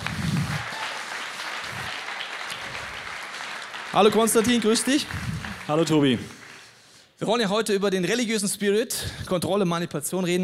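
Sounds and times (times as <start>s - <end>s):
crowd applauding: 0.0s - 6.9s
speech: 3.9s - 6.4s, 7.2s - 10.4s.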